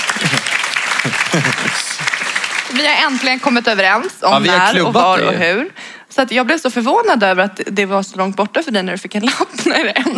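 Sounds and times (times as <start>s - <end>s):
laughter: 0.0s - 2.2s
audience applause: 0.0s - 3.7s
speech: 1.4s - 1.8s, 2.8s - 10.1s
voices talking and exclaiming: 4.0s - 5.7s.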